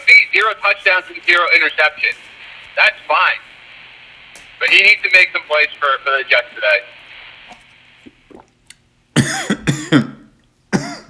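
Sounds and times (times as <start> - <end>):
speech: 0.4 - 3.5, 4.6 - 7.0, 9.2 - 10.2
person coughing after water went down wrong pipe: 9.2 - 11.0.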